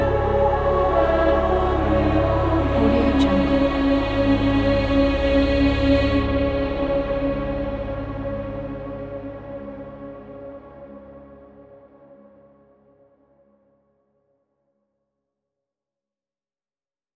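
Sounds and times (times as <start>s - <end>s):
angelic choir chanting: 0.0s - 8.2s.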